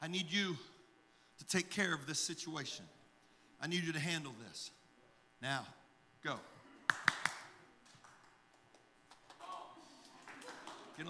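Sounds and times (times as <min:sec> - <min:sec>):
speech: 0:00.1 - 0:00.7, 0:01.4 - 0:03.0, 0:03.6 - 0:04.8, 0:05.4 - 0:07.0
hand claps: 0:06.8 - 0:11.0.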